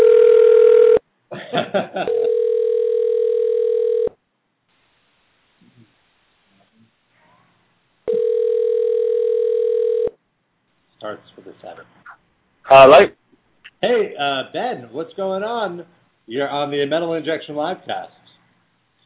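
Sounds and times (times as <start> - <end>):
telephone ringing: 0.0 - 1.0, 2.1 - 4.1, 8.1 - 10.2
speech: 12.7 - 13.2, 13.8 - 18.2.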